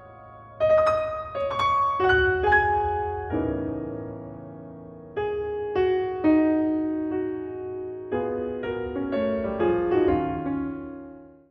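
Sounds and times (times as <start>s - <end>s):
piano sonata: 0.0s - 11.4s.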